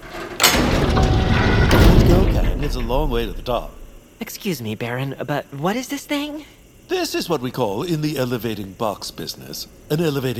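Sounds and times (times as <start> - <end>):
large heavy iron door sliding open: 0.0 - 4.0
speech: 2.6 - 10.3.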